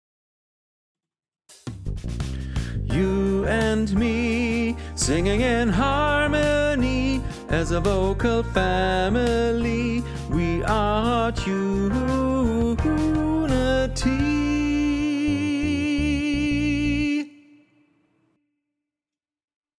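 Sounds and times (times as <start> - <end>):
tenor singing: 2.9 - 17.6.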